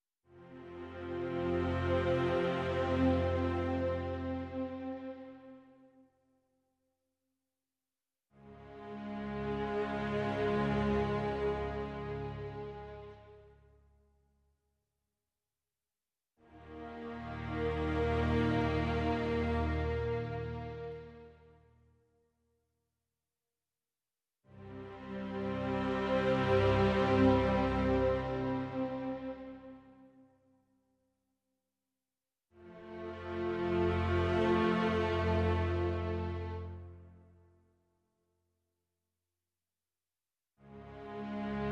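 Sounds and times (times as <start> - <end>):
strings: 0.4 - 5.6, 8.4 - 13.5, 16.5 - 21.5, 24.6 - 29.8, 32.6 - 37.2, 40.7 - 41.7.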